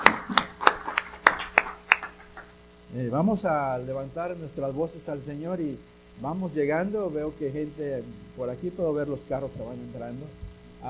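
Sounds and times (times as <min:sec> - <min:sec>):
hands clapping: 0:00.0 - 0:02.6
speech: 0:03.0 - 0:10.8.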